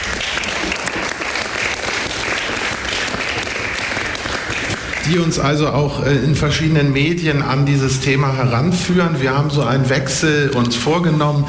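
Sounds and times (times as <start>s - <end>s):
audience applause: 0.0s - 5.5s
speech: 5.1s - 11.4s.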